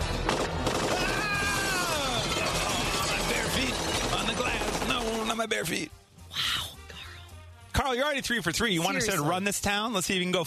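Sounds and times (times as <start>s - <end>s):
dense volley of gunfire: 0.0s - 5.5s
speech: 5.4s - 6.0s, 7.9s - 10.4s.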